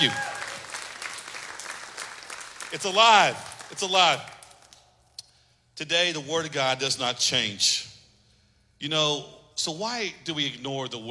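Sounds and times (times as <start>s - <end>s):
speech: 0.0s - 0.3s, 2.7s - 4.3s, 5.8s - 7.9s, 8.8s - 11.0s
audience hand clapping: 0.0s - 5.0s.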